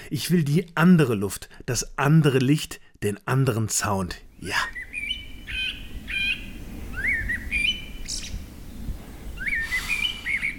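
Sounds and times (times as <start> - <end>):
speech: 0.1 - 4.9
forest birds singing in the evening: 3.8 - 10.5.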